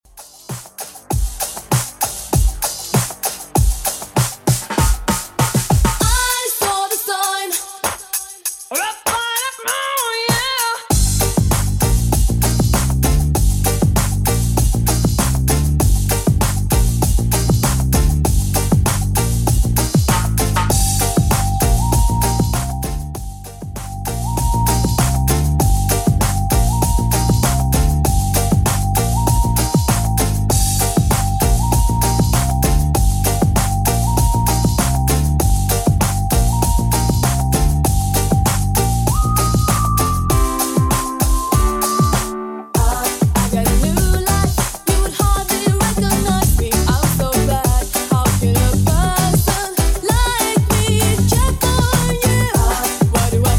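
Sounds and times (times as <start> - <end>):
1990s-style music beat at 98 BPM: 0.0 - 53.5.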